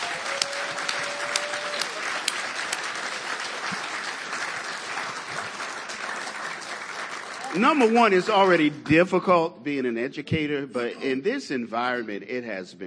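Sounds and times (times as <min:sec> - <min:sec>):
audience applause: 0:00.0 - 0:09.0
speech: 0:07.6 - 0:12.8.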